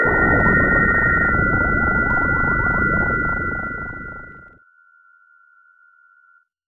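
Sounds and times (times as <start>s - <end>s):
teleportation effect: 0.1s - 4.6s.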